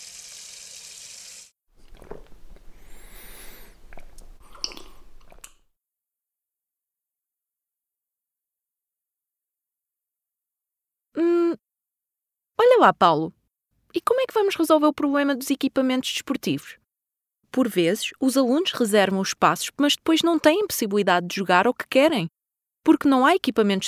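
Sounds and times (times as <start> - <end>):
drinking water from a fountain: 1.8 - 5.6
speech: 12.8 - 16.8, 17.5 - 23.8.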